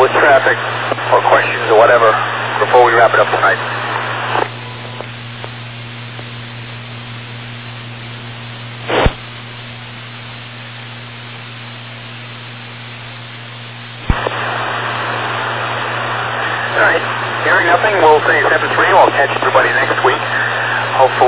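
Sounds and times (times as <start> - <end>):
radio static: 0.0 - 6.4, 8.8 - 9.3, 13.9 - 21.2
low electrical hum: 0.0 - 21.2
speech: 0.1 - 1.3.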